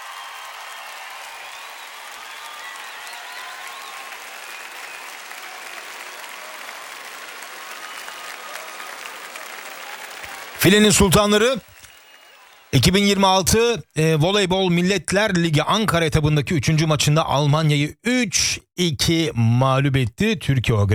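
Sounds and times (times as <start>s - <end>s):
applause: 0.0s - 13.6s
speech: 10.6s - 11.7s, 12.7s - 20.9s.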